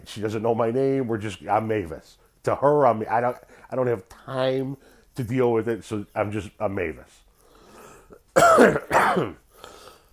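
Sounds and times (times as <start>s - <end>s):
quiet low-level noise: 0.0s - 10.1s
speech: 0.1s - 7.2s, 8.4s - 9.4s
throat clearing: 8.4s - 9.4s.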